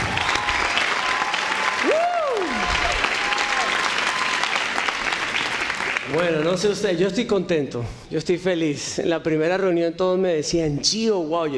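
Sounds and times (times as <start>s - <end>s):
whistle or cheer: 0.0s - 4.5s
large audience applauding: 0.0s - 6.7s
speech: 6.1s - 11.5s.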